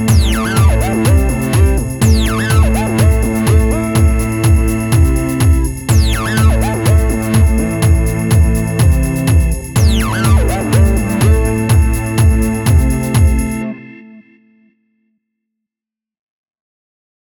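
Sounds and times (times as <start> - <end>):
dark dub music: 0.0 - 13.7.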